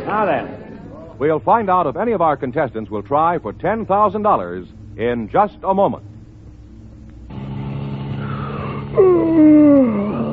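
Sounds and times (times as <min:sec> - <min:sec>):
speech: 0:00.1 - 0:06.1, 0:09.0 - 0:09.5
person yawning: 0:08.2 - 0:10.3.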